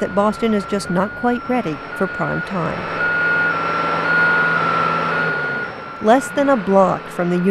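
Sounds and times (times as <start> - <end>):
speech: 0.0 - 3.0, 6.0 - 7.4
Big Dig tunnel construction site noise in Boston: 0.0 - 7.4
steady high beeping tone at the Big Dig construction site in Boston: 0.0 - 7.4
truck engine rumble at the Big Dig tunnel site in Boston: 0.0 - 7.4.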